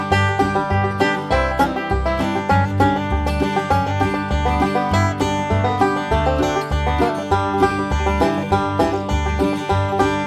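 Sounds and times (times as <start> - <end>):
beginner banjo playing at 100 BPM: 0.0 - 10.2.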